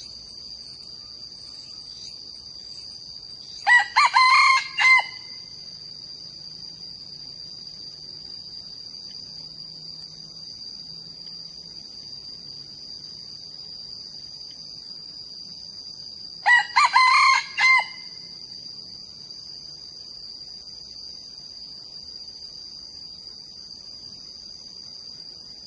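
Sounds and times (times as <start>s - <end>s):
young male red junglefowl crowing: 3.6s - 5.5s, 16.4s - 18.3s.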